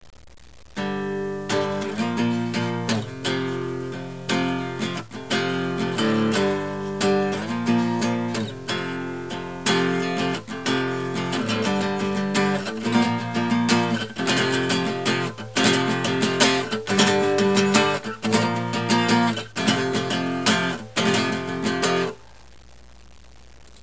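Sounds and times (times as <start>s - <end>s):
acoustic music: 0.8s - 22.3s.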